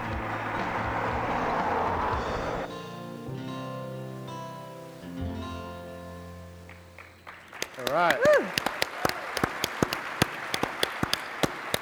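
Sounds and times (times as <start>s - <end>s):
audience applause: 0.0s - 2.7s, 6.6s - 11.8s
faint hiss: 0.0s - 11.7s
speech: 7.9s - 8.6s.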